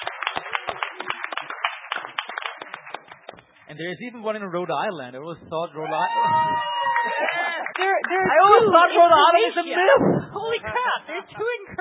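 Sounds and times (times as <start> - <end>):
audience applause: 0.0 - 3.4, 5.9 - 8.5
speech: 3.7 - 11.6.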